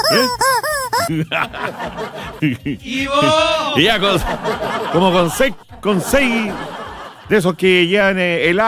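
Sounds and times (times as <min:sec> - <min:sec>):
squeezed rubber chicken toy honking: 0:00.0 - 0:01.1
speech: 0:00.1 - 0:00.4, 0:01.1 - 0:08.6
laughter: 0:01.0 - 0:07.7.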